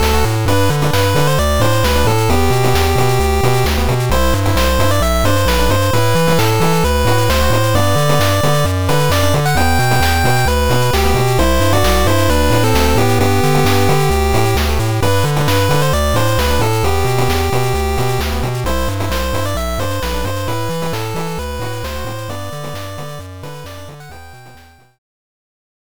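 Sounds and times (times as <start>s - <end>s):
8-bit fanfare: 0.0s - 25.0s.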